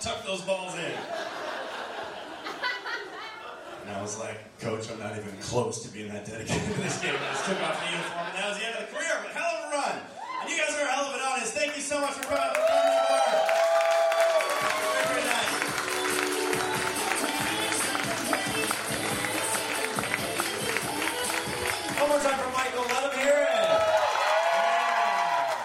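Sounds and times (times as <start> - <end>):
speech: 0.0 - 1.4, 3.9 - 13.6
laughter: 0.8 - 3.9, 6.4 - 9.3
audience applause: 12.0 - 25.6.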